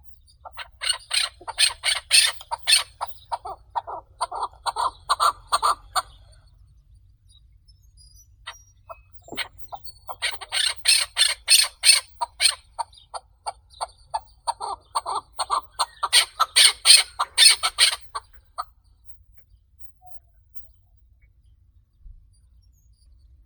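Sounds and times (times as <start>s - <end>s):
chukar Alectoris chukar calling: 0.1s - 6.5s, 8.5s - 18.8s.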